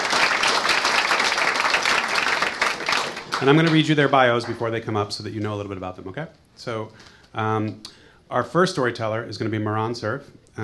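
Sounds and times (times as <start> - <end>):
audience round of applause: 0.0 - 4.6
speech: 3.4 - 10.6.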